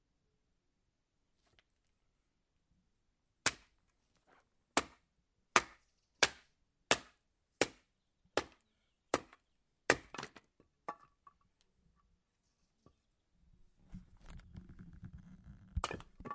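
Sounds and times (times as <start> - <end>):
wood chopping: 3.4 - 3.8, 4.7 - 11.1.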